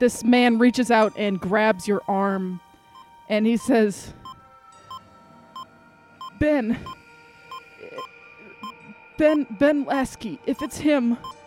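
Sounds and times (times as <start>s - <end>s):
speech: 0.0s - 2.7s, 3.3s - 4.2s, 6.4s - 7.0s, 9.2s - 11.4s
heart monitor beeping: 2.9s - 5.0s, 5.6s - 9.5s, 10.6s - 11.4s.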